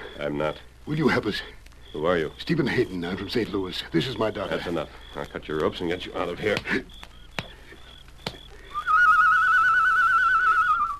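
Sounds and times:
speech: 0:00.2 - 0:07.1
sharp clicks: 0:02.8 - 0:09.0
person whistling imitating a bird call: 0:08.7 - 0:10.9.

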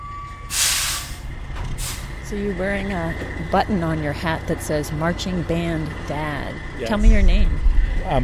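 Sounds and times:
air brake hiss from a big black tractor-trailer truck: 0:00.5 - 0:02.1
speech: 0:02.3 - 0:08.2.

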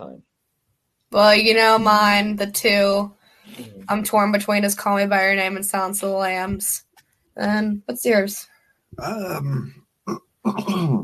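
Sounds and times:
speech: 0:01.1 - 0:06.8, 0:07.4 - 0:11.0
person coughing: 0:09.0 - 0:11.0.

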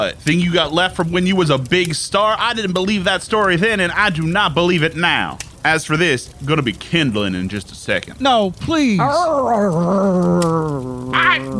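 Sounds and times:
speech: 0:00.0 - 0:11.5
dog growling: 0:09.0 - 0:11.5.

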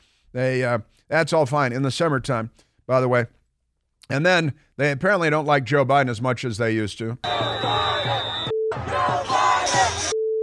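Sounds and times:
speech: 0:00.3 - 0:03.4, 0:04.1 - 0:10.1
crowd chanting at a rally: 0:07.2 - 0:10.2.

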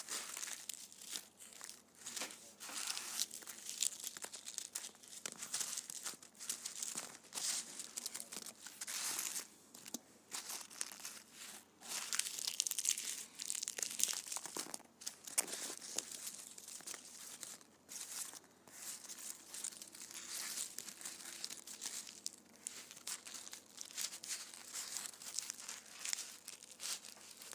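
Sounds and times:
candy wrappers crinkling and crumpling: 0:00.0 - 0:27.5.

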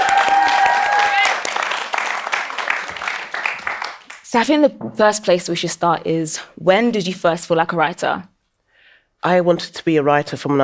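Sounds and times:
crowd applause: 0:00.0 - 0:04.2
speech: 0:04.3 - 0:08.3, 0:09.2 - 0:10.6.

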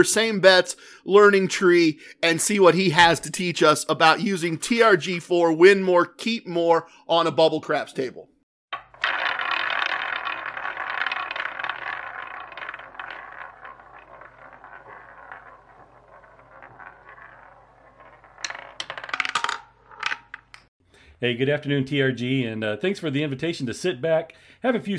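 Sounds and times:
speech: 0:00.0 - 0:08.3, 0:21.2 - 0:24.9
roulette ball landing on wheel: 0:08.8 - 0:20.7.

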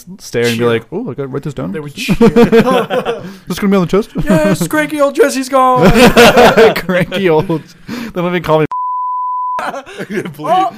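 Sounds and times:
speech: 0:00.0 - 0:08.7, 0:09.6 - 0:10.7
laughter: 0:02.0 - 0:03.4, 0:04.1 - 0:04.9, 0:05.7 - 0:07.7, 0:09.6 - 0:10.7
censor bleep tone: 0:08.7 - 0:09.6.

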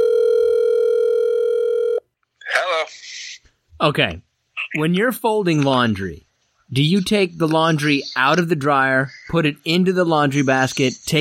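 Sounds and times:
telephone dialing tone: 0:00.0 - 0:02.0
speech: 0:03.8 - 0:11.1.

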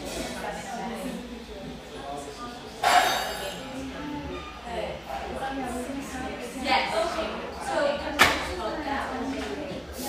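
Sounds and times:
humming café near the beach north of San Diego: 0:00.0 - 0:10.0.

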